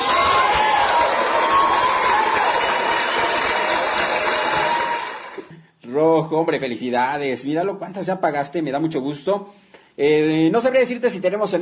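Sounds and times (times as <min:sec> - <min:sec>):
applause: 0:00.0 - 0:05.5
people cheering: 0:00.0 - 0:05.5
speech: 0:06.3 - 0:11.5.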